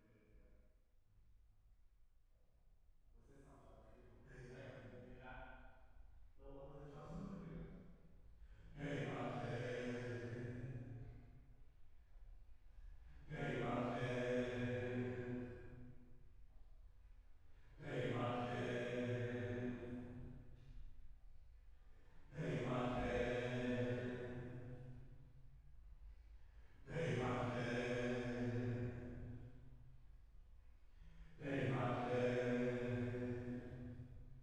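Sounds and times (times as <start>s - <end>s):
choir singing: 8.8s - 10.7s, 13.3s - 15.6s, 17.8s - 20.2s, 22.4s - 24.7s, 26.9s - 29.3s, 31.4s - 33.9s.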